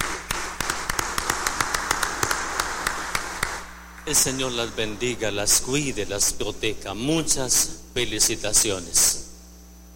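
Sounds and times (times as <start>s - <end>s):
scattered hand claps: 0.0s - 3.8s
steady hiss: 0.0s - 9.9s
speech: 4.1s - 9.2s.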